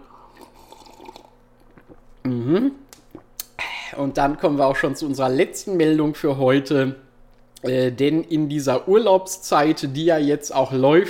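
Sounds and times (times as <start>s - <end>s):
person sipping a drink: 0.0s - 4.0s
speech: 2.5s - 2.8s, 4.0s - 7.0s, 7.6s - 11.0s.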